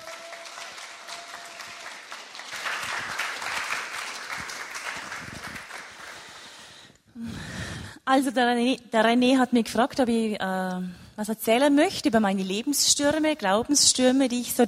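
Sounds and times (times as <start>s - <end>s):
audience applause: 0.0s - 6.6s
speech: 8.1s - 14.6s.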